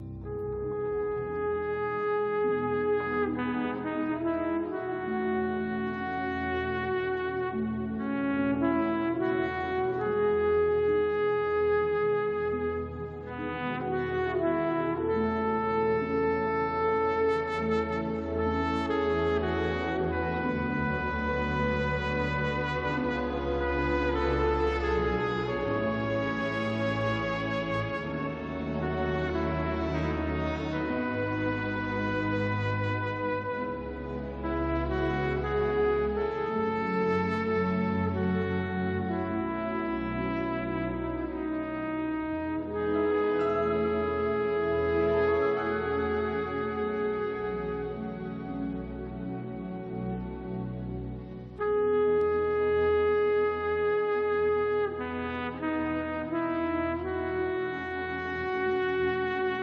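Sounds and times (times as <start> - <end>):
trumpet: 0.0 - 59.6.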